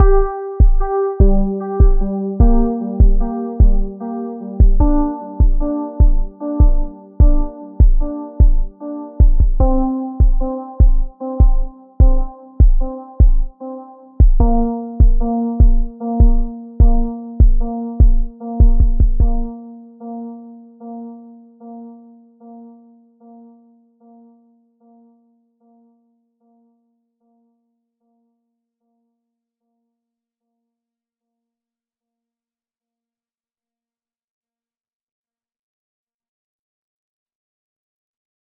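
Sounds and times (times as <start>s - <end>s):
drum beats: 0.0s - 3.9s, 4.6s - 13.5s, 14.2s - 19.5s
simple melodic sequence: 0.0s - 24.2s.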